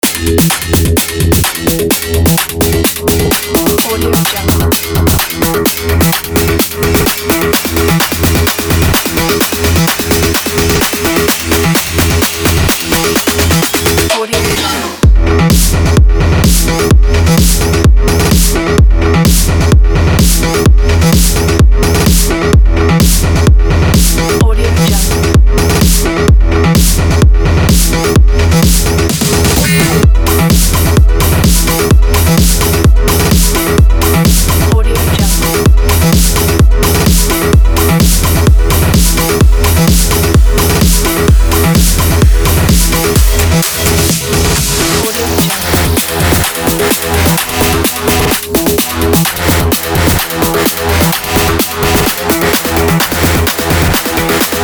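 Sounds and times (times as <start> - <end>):
cyberpunk futuristic EDM: 0.0 - 54.6.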